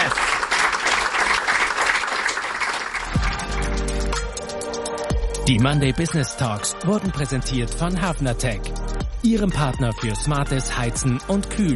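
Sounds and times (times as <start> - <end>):
audience applause: 0.0 - 4.3
speech: 5.5 - 11.7.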